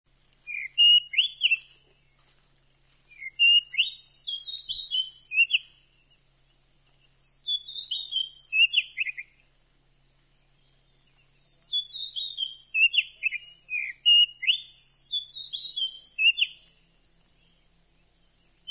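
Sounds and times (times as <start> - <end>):
Oriental magpie-robin singing sweet varied whistles: 0.4 - 1.8, 3.1 - 6.3, 7.0 - 9.4, 10.3 - 18.6.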